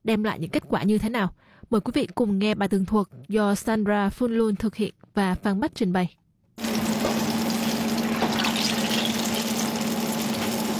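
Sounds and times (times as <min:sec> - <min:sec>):
speech: 0:00.1 - 0:06.2
eggplant pieces frying in hot oil at Li Ho Phúc in Melbourne: 0:06.6 - 0:10.7.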